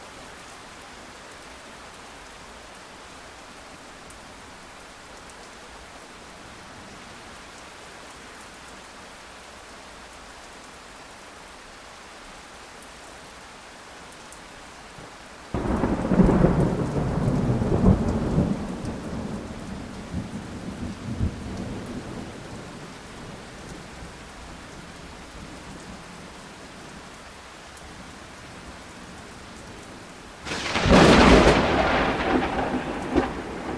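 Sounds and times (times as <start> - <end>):
medium rain in a thunderstorm: 0.0 - 33.7
various direct lightning strikes: 15.6 - 20.2, 30.5 - 33.7.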